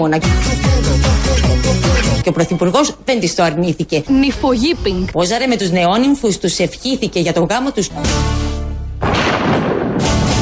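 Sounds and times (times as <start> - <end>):
speech: 0.0 - 8.4
thunderclap during a storm: 9.0 - 10.3.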